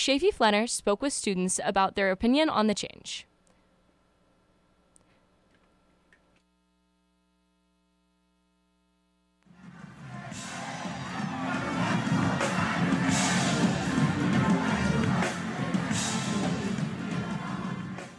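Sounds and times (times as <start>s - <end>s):
speech: 0.0s - 3.3s
concert crowd roaring: 9.5s - 18.1s.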